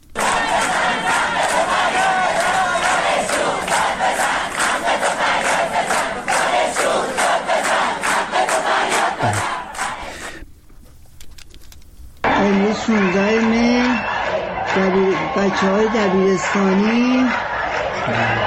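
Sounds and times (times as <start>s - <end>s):
loud crowd shouting: 0.1s - 10.1s, 12.3s - 18.4s
protesting students chanting slogans: 0.1s - 10.2s, 13.0s - 15.2s, 16.7s - 18.4s
speech: 15.5s - 17.4s, 18.1s - 18.4s.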